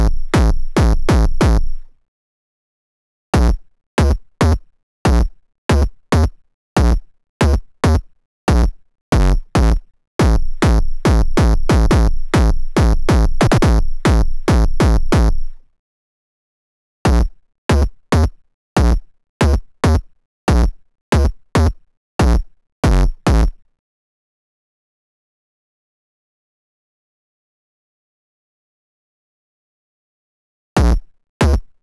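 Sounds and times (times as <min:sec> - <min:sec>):
kick drum: 0:00.0 - 0:01.8, 0:03.4 - 0:15.5, 0:17.1 - 0:17.9, 0:18.8 - 0:21.3, 0:22.2 - 0:23.5, 0:30.8 - 0:31.6.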